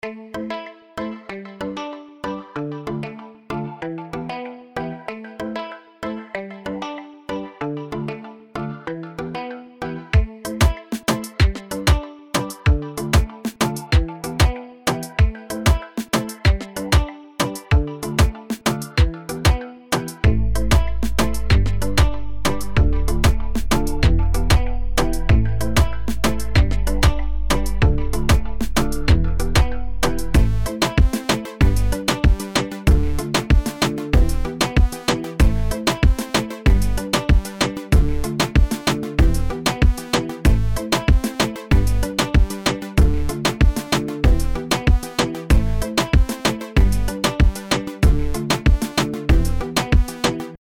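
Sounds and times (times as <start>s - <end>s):
urban reggaeton sample kit: 10.2s - 50.6s.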